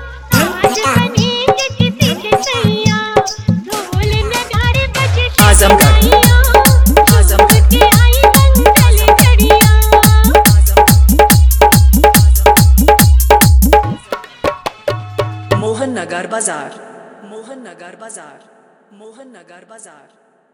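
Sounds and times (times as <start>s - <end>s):
old Hindi song mix: 0.2s - 16.0s.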